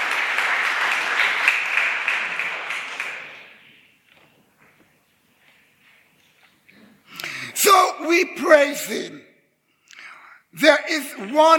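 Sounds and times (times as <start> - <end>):
audience applause: 0.0 - 3.8
speech: 8.1 - 9.3, 10.6 - 11.5.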